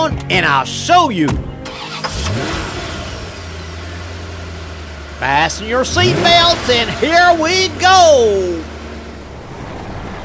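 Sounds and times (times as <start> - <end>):
speech: 0.0 - 2.7, 5.2 - 8.7
2001 Chevrolet Corvette Z06 engine revving and idling: 1.3 - 10.2.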